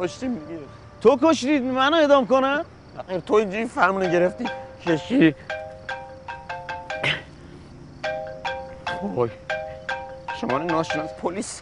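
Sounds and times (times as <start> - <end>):
speech: 0.0 - 5.6, 9.0 - 9.4, 10.4 - 11.6
mobile phone melodic ringtone: 4.0 - 11.6.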